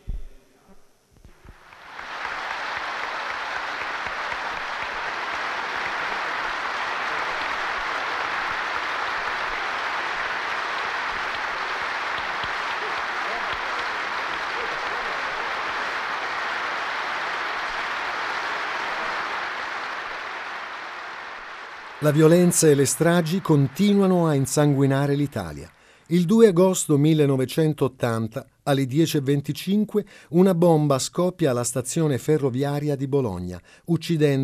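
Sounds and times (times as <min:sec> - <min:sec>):
applause from an assembly of grand electors: 0:01.3 - 0:26.6
speech: 0:22.0 - 0:34.4.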